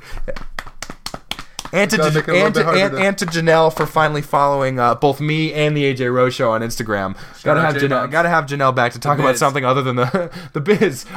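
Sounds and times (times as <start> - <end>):
golf claps: 0.2 - 4.2
speech: 1.7 - 11.1.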